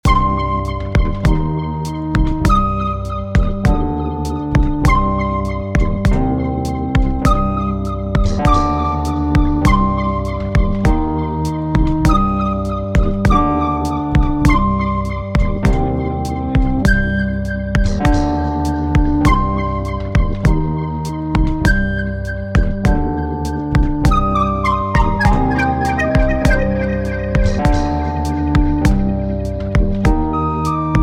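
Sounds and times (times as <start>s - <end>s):
pipe jam: 0.0s - 31.0s.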